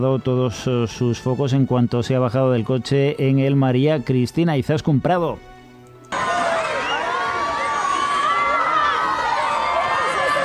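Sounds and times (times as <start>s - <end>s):
speech: 0.0s - 5.5s
crowd of fans cheering and screaming on a red carpet: 6.1s - 10.4s.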